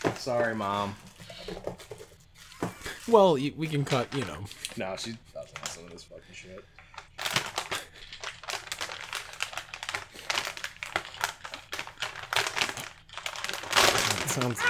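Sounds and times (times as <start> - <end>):
brown paper bag crinkling as it is stabbed: 0.0 - 6.0, 6.9 - 14.6
speech: 0.2 - 2.1, 3.1 - 7.9, 14.4 - 14.6.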